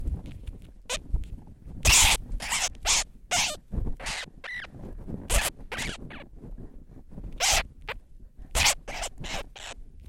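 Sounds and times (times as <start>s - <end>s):
blue petrel calls: 1.8s - 4.7s, 5.3s - 6.2s, 7.4s - 8.0s, 8.6s - 10.0s.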